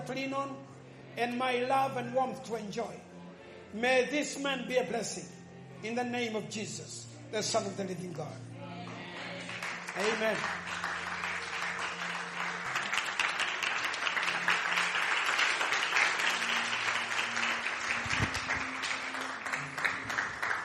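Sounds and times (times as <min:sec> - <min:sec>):
speech: 0:00.1 - 0:03.1, 0:03.7 - 0:08.5, 0:10.0 - 0:10.9
audience applause: 0:08.9 - 0:20.6.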